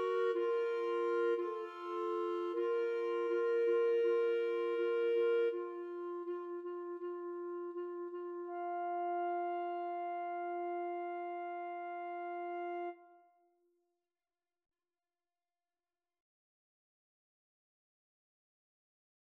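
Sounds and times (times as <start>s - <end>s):
clarinet trio playing a pavane: 0.0s - 13.1s.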